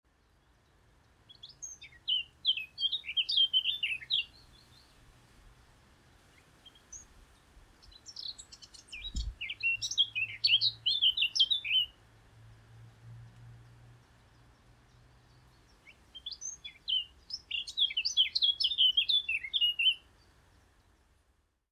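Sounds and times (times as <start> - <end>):
Eurasian blackcap song: 0.1 - 12.0, 13.6 - 21.2
soft low thump: 9.0 - 9.4.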